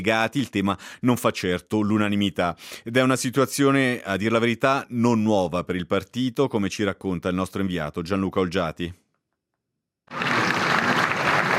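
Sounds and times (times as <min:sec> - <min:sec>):
speech: 0:00.0 - 0:09.0
applause from party delegates at a congress: 0:10.1 - 0:11.5.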